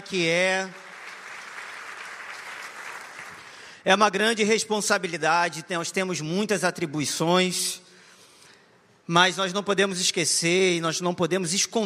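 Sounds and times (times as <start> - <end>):
speech: 0.0 - 0.9, 3.8 - 7.8, 9.1 - 11.8
church congregation clapping: 0.0 - 3.8.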